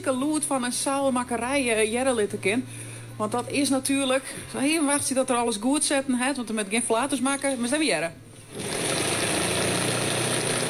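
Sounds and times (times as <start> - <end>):
speech: 0.0 - 8.8
giant industrial sewing machines in a sailmaking workshop: 8.4 - 10.6.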